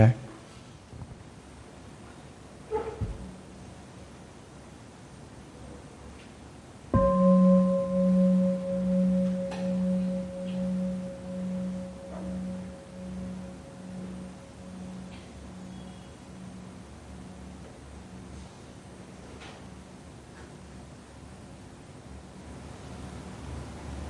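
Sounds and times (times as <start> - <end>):
meditation bell ringing: 7.0 - 18.4.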